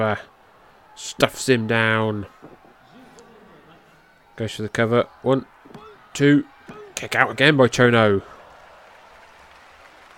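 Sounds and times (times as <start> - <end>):
speech: 0.0 - 0.3, 1.0 - 2.6, 4.4 - 8.3
wrestling crowd applauding: 0.0 - 10.1
laughter: 2.4 - 4.2.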